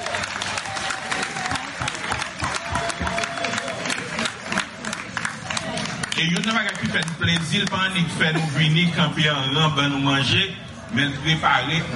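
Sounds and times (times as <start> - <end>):
audience applauding: 0.0 - 8.0
crowd voices and cheering: 0.0 - 11.9
speech: 6.2 - 11.9.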